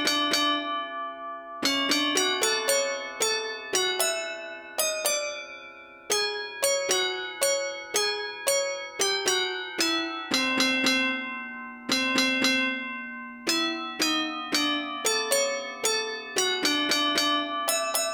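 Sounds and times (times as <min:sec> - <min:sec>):
tram glockenspiel: 0:00.2 - 0:18.1.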